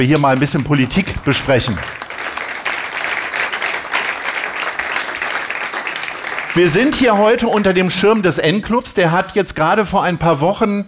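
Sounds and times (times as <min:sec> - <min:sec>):
speech: 0:00.0 - 0:02.0, 0:06.6 - 0:10.8
audience applauding: 0:00.6 - 0:08.3.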